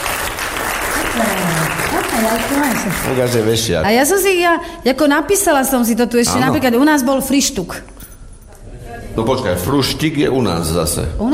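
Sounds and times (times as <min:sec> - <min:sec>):
quiz game show audience clapping: 0:00.0 - 0:03.7
speech: 0:01.2 - 0:08.0, 0:09.2 - 0:11.3.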